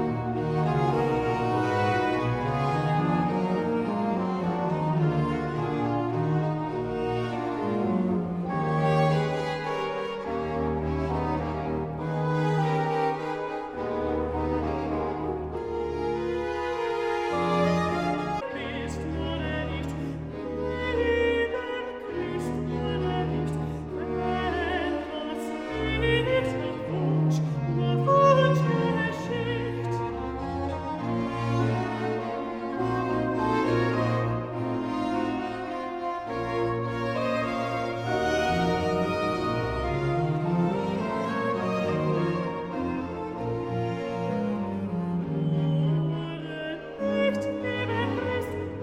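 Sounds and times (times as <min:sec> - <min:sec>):
alto singing an aria: 0:00.1 - 0:48.8.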